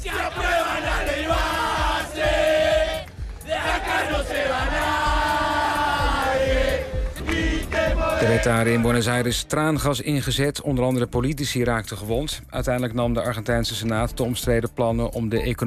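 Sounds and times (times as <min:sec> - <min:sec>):
protesters shouting outside parliament: 0:00.0 - 0:09.0
speech: 0:08.2 - 0:15.6.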